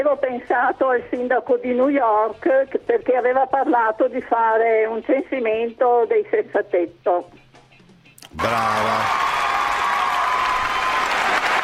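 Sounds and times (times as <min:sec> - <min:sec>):
speech: 0:00.0 - 0:07.4, 0:08.4 - 0:09.4
audience applause: 0:08.4 - 0:11.6.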